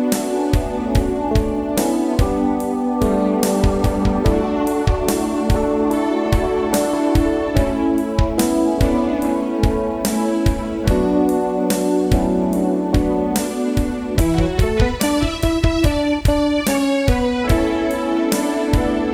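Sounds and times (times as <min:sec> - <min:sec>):
ambient keyboards: 0:00.0 - 0:19.1.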